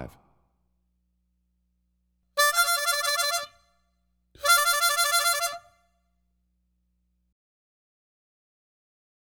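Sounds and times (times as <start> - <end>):
blues harmonica: 2.4 - 3.6, 4.4 - 5.7.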